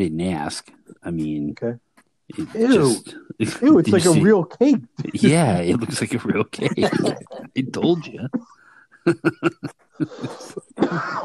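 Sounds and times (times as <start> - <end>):
speech: 0.0 - 11.2
laughter: 2.4 - 8.3, 9.1 - 11.2
person coughing: 3.9 - 7.4, 9.1 - 11.2.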